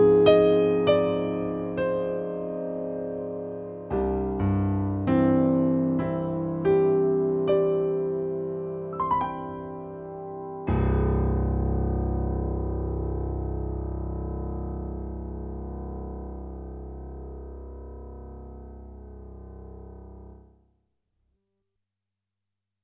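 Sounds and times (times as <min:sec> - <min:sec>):
improvised music: 0:00.0 - 0:14.8.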